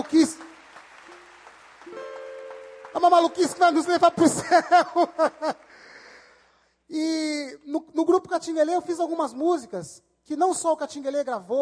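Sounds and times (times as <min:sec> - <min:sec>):
audience applauding: 0:00.0 - 0:06.3
speech: 0:03.0 - 0:05.9, 0:06.9 - 0:11.6
laughter: 0:04.1 - 0:05.8.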